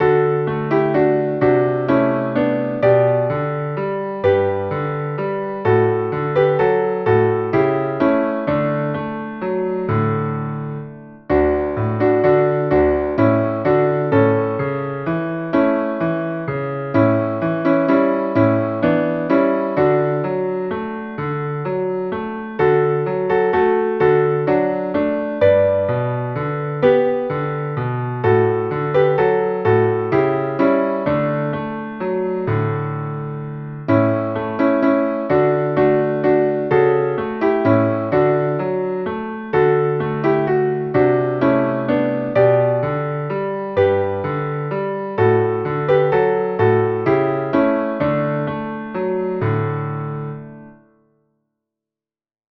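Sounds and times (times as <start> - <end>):
piano: 0.0 - 51.5.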